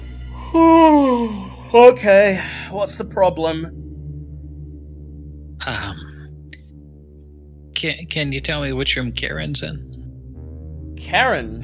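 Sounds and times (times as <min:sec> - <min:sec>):
loud yawn: 0:00.4 - 0:01.7
speech: 0:00.5 - 0:03.8, 0:05.7 - 0:06.1, 0:07.8 - 0:09.9, 0:11.0 - 0:11.6.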